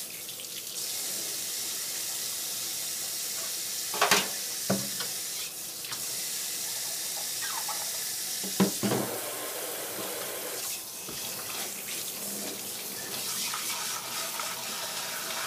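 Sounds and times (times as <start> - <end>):
tap water running at a sink: 0.0 - 15.4
dishes clinking and clattering at a sink: 4.0 - 4.4.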